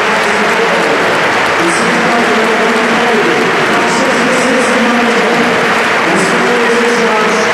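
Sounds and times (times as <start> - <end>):
stadium crowd applause tribute: 0.0 - 7.5.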